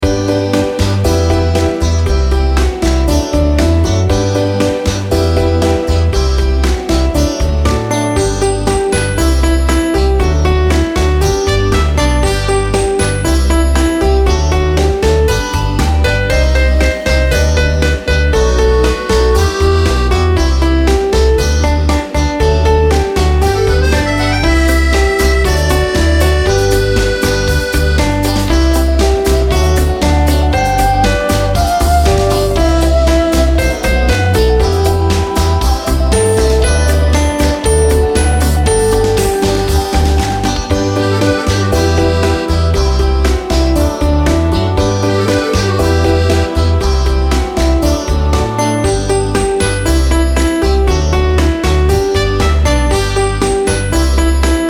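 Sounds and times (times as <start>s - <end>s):
karaoke singing: 0.0s - 54.6s.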